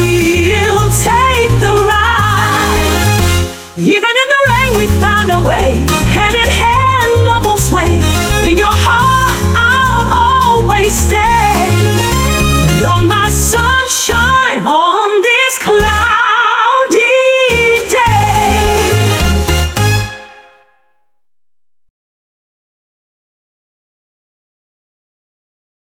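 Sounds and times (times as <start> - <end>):
love song: 0.0 - 20.6.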